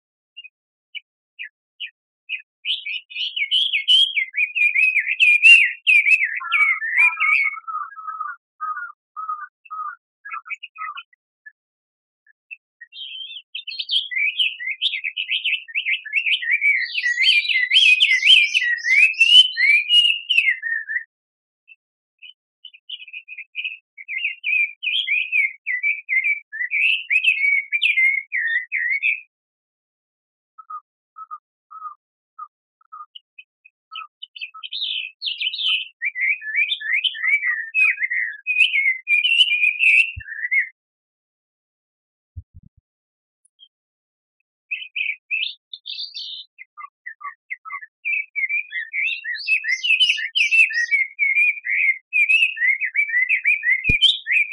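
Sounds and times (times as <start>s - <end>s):
bird: 0.3s - 29.4s, 30.6s - 40.8s, 43.4s - 54.5s.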